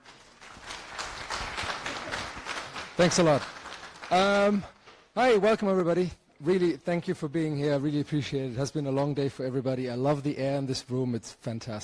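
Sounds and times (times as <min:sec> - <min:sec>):
audience applause: 0:00.0 - 0:04.8
speech: 0:03.0 - 0:11.8.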